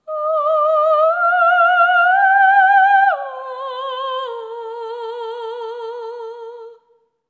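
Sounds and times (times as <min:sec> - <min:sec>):
ethereal symphony of voices: 0:00.0 - 0:06.9.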